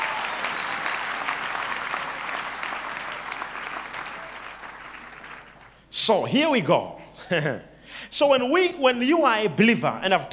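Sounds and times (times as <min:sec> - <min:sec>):
audience clapping hands: 0:00.0 - 0:05.9
speech: 0:06.0 - 0:10.3.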